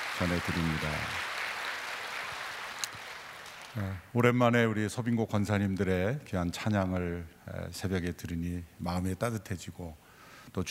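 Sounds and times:
crowd applause: 0:00.0 - 0:04.0
speech: 0:00.2 - 0:01.3, 0:03.8 - 0:10.6.

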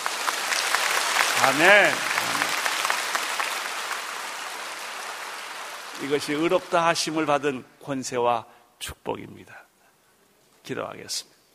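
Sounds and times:
audience applause: 0:00.0 - 0:07.5
speech: 0:01.5 - 0:02.4, 0:06.0 - 0:09.7, 0:10.7 - 0:11.3.

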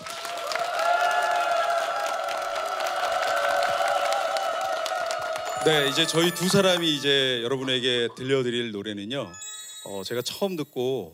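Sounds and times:
audience applause and cheering: 0:00.0 - 0:08.1
speech: 0:05.6 - 0:11.1.

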